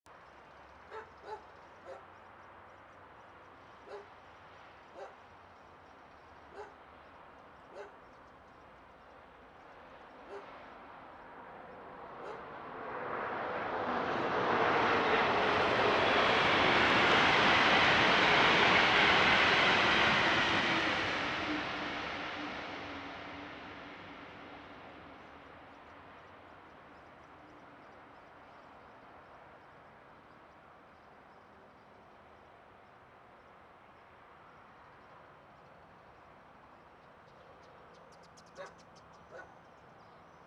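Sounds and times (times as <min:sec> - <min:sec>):
train: 0:00.0 - 0:40.4.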